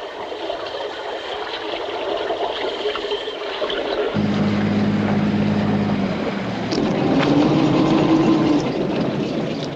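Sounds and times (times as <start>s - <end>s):
water noise: 0.2s - 9.7s
boat engine droning while arriving at a pier: 4.1s - 9.7s.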